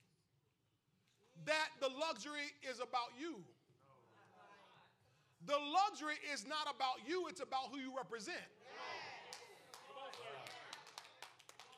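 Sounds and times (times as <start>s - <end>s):
speech: 1.4s - 3.6s, 5.4s - 8.9s
half-hearted clapping from audience: 9.3s - 11.7s.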